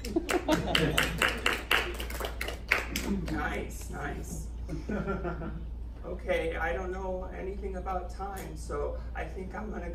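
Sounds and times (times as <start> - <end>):
laughter: 0.0 - 1.6, 4.7 - 5.8
clapping: 0.0 - 3.5
speech: 3.5 - 9.9.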